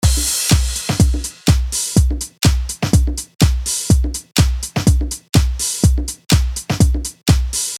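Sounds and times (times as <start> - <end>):
drums: 0.0 - 7.7.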